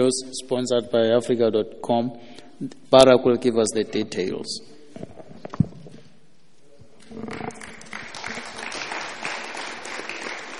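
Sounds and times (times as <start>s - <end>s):
speech: 0.0s - 5.6s
audience applause: 7.2s - 10.5s.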